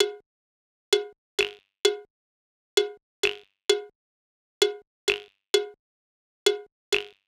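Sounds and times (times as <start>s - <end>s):
percussion loop: 0.0s - 0.2s, 0.9s - 2.1s, 2.8s - 3.9s, 4.6s - 5.8s, 6.5s - 7.2s.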